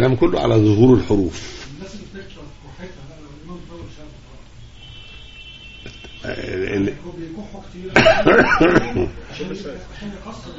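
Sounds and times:
speech: 0:00.0 - 0:01.6, 0:06.2 - 0:10.5
laughter: 0:07.9 - 0:10.3
person coughing: 0:08.0 - 0:09.1
person clearing throat: 0:08.0 - 0:09.2.

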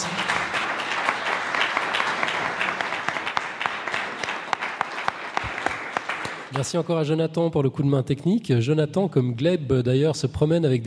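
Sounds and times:
crowd applauding: 0:00.0 - 0:06.8
speech: 0:06.5 - 0:10.8.

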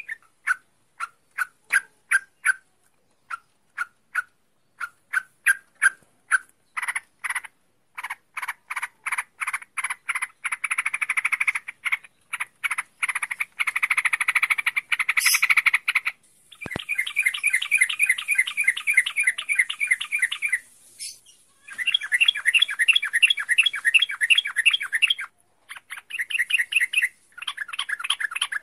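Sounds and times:
bird song: 0:00.0 - 0:28.6.

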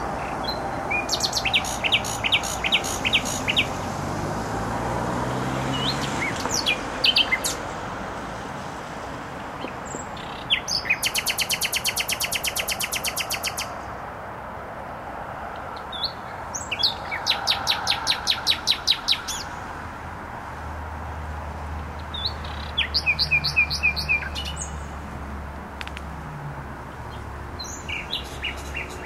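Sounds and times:
nightingale singing: 0:00.0 - 0:03.9, 0:05.6 - 0:07.7, 0:09.6 - 0:13.9, 0:15.8 - 0:19.7, 0:22.0 - 0:25.0, 0:27.1 - 0:29.0
heavy motorway traffic rumble: 0:00.0 - 0:29.0.

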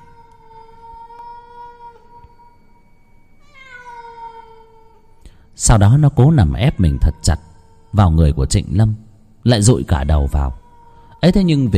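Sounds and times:
black cat meowing mournfully on a coffin: 0:00.0 - 0:02.4, 0:03.4 - 0:05.2, 0:06.3 - 0:08.7, 0:10.2 - 0:11.7
speech: 0:05.6 - 0:10.6, 0:11.2 - 0:11.7.

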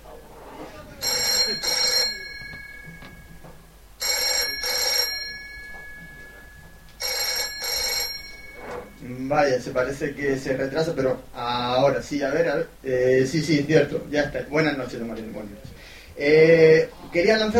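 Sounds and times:
low hum: 0:00.0 - 0:17.5
telephone ringing tone on an outgoing call: 0:01.0 - 0:09.2
speech: 0:09.3 - 0:17.5.

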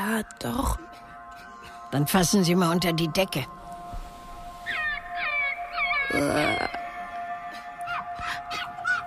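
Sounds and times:
speech: 0:00.2 - 0:00.9, 0:01.9 - 0:03.6, 0:06.1 - 0:06.8
tame bandaged fox whining under a blanket: 0:04.6 - 0:06.9, 0:07.5 - 0:09.0.

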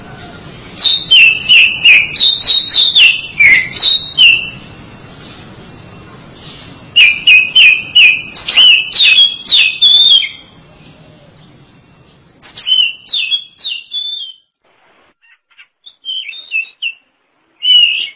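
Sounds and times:
Oriental magpie-robin whistled notes: 0:00.1 - 0:04.6, 0:06.4 - 0:10.4, 0:12.4 - 0:14.6, 0:15.2 - 0:18.1.

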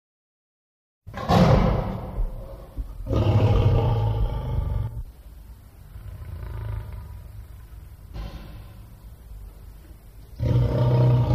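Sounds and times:
lion roaring: 0:02.4 - 0:05.1, 0:06.0 - 0:07.4, 0:10.4 - 0:11.3.

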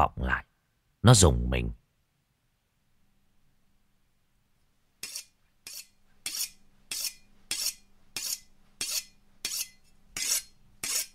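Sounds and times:
speech: 0:00.0 - 0:00.4, 0:01.0 - 0:01.8
knife being sharpened: 0:05.0 - 0:11.1.

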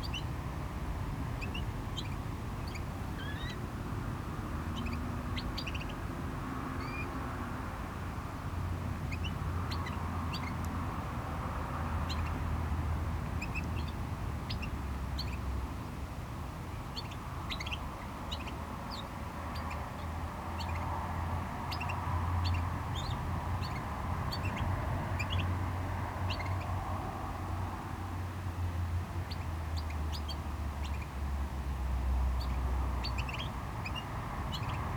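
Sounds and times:
small bird chirping: 0:00.0 - 0:00.3, 0:01.4 - 0:03.6, 0:04.6 - 0:06.0, 0:06.8 - 0:07.2, 0:09.0 - 0:10.6, 0:12.0 - 0:12.5, 0:13.4 - 0:15.5, 0:16.7 - 0:21.0, 0:21.6 - 0:26.8, 0:29.2 - 0:31.2, 0:32.3 - 0:34.9
traffic: 0:00.0 - 0:34.9.

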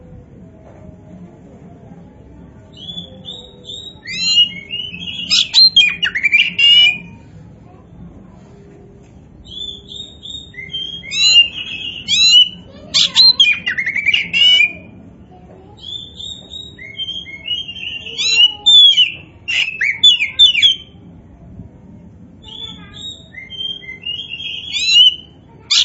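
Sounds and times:
Oriental magpie-robin singing: 0:02.7 - 0:07.2, 0:09.4 - 0:14.9, 0:15.8 - 0:20.9, 0:22.4 - 0:25.8.

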